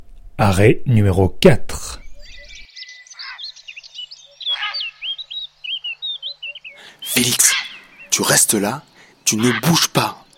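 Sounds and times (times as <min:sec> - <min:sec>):
speech: 0:00.4 - 0:02.0, 0:07.2 - 0:10.2
chorus of heron cries: 0:03.2 - 0:03.5, 0:04.3 - 0:05.3, 0:06.2 - 0:08.2, 0:09.3 - 0:09.9.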